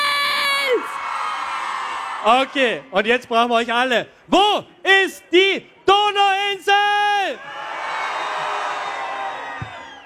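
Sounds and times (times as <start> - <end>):
festival crowd cheering at the Donauinsel: 0.0 - 2.9, 6.9 - 10.0
speech: 2.2 - 7.6.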